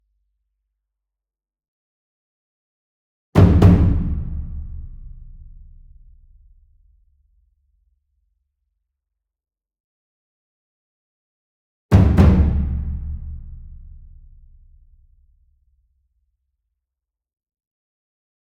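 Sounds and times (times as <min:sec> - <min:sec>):
medium ensemble Taiko double drum: 0:03.4 - 0:06.2, 0:11.9 - 0:14.6.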